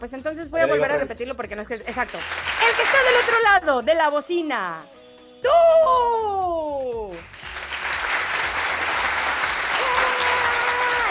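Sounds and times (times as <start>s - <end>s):
speech: 0.0s - 6.9s
applause sound effect: 2.0s - 3.6s, 7.0s - 11.0s.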